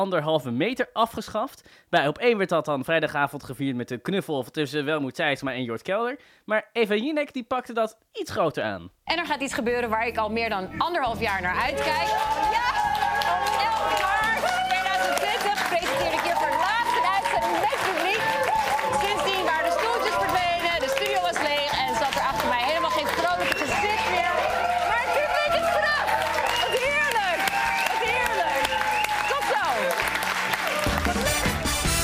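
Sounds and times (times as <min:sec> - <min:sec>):
speech: 0:00.0 - 0:13.7
studio audience rushing in applauding: 0:11.3 - 0:32.0.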